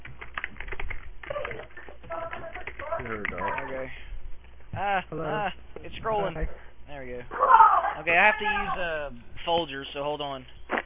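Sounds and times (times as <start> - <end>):
keyboard tapping while typing out a phone number: 0.0 - 3.7
speech: 3.0 - 4.1, 4.7 - 10.6.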